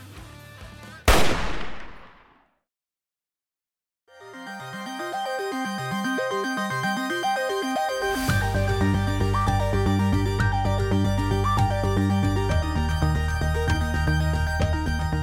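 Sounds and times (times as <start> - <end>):
music: 0.0 - 1.1, 4.1 - 15.2
rifle shot: 1.1 - 2.4.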